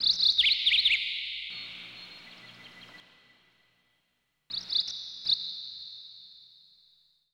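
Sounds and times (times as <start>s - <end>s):
ambience: 0.0s - 5.0s.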